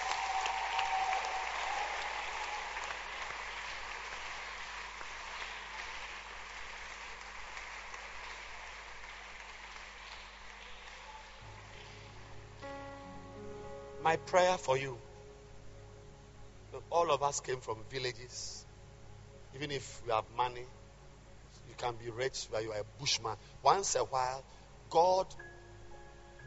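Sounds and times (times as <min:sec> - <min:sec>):
audience clapping hands: 0:00.0 - 0:12.7
speech: 0:14.1 - 0:15.0, 0:17.0 - 0:18.6, 0:19.6 - 0:20.8, 0:21.8 - 0:25.5.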